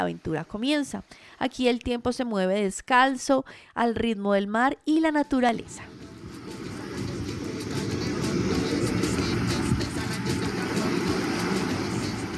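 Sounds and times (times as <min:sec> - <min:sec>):
speech: 0:00.0 - 0:06.0
ocean waves: 0:05.5 - 0:12.3.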